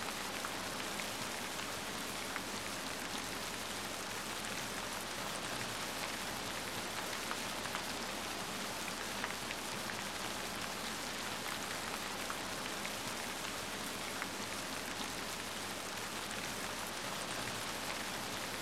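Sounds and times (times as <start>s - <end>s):
rain: 0.0s - 18.6s.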